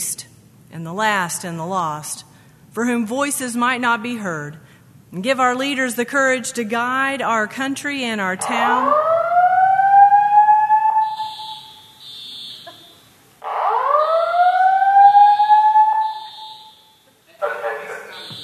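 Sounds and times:
speech: 0.7s - 9.1s
shrill pulsing beep: 8.4s - 9.4s, 11.0s - 12.8s, 15.2s - 17.0s, 18.2s - 18.4s
fire alarm wailing: 8.4s - 17.0s, 18.1s - 18.4s.

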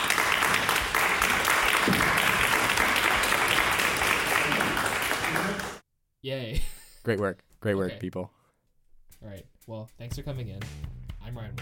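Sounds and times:
crowd cheering and clapping at a board meeting: 0.0s - 5.8s
speech: 6.3s - 8.4s, 9.2s - 11.6s.

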